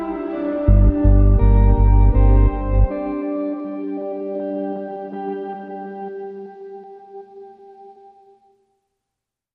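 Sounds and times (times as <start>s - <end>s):
drone: 0.0s - 3.3s.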